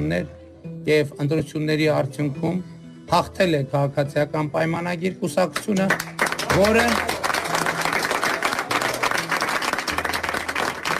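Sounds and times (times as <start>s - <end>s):
speech: 0.0s - 7.1s
applause accompanying a political speech: 5.6s - 10.9s.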